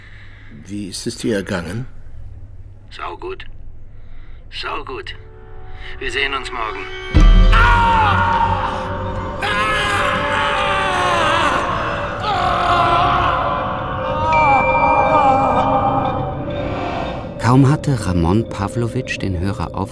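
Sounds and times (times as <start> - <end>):
speech: 0.6 - 2.0, 2.9 - 3.6, 4.5 - 9.0, 17.5 - 19.8
deafening scream of pain, surprise and anger: 7.1 - 16.3.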